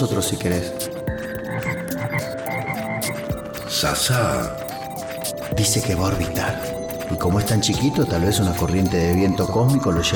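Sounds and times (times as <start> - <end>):
speech: 0.0 - 1.7, 3.8 - 4.6, 5.5 - 10.1
toad croaking: 1.1 - 7.2.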